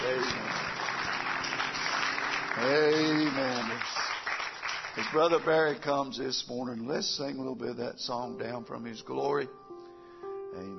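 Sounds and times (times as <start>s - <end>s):
audience rhythmic hand clapping: 0.0s - 6.1s
speech: 2.6s - 4.0s, 5.0s - 9.6s, 10.6s - 10.7s.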